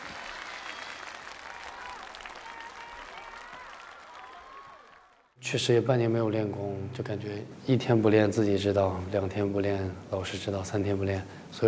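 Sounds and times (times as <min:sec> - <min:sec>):
crowd applauding: 0:00.0 - 0:05.4
speech: 0:05.4 - 0:11.6.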